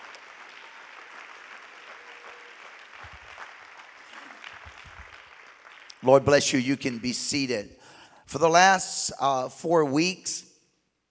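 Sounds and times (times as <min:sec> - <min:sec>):
audience clapping hands: 0:00.0 - 0:07.5
speech: 0:06.0 - 0:10.5.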